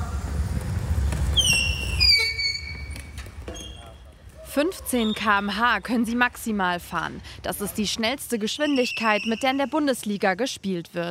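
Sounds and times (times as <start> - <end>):
squealing tyres of electric wheelchairs: 1.1 - 4.0, 8.5 - 9.8
speech: 4.6 - 11.1.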